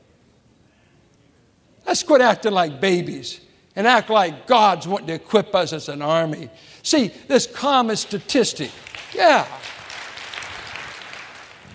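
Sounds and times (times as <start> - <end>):
speech: 1.9 - 9.8
audience applause: 8.8 - 11.7.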